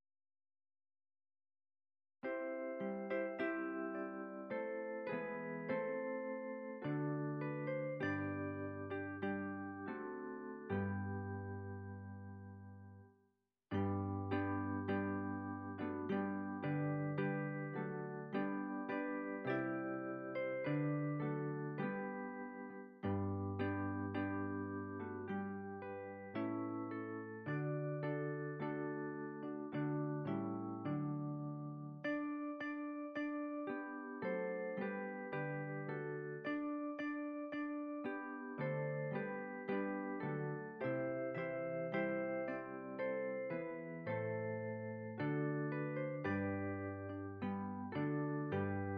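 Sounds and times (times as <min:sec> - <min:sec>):
classical MIDI music: 0:02.2 - 0:13.1, 0:13.7 - 0:48.9.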